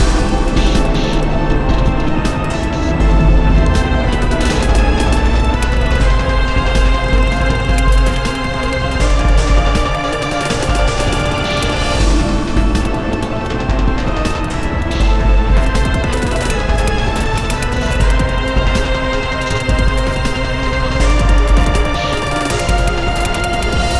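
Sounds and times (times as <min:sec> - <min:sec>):
steelworks ambience: 0:00.0 - 0:23.9.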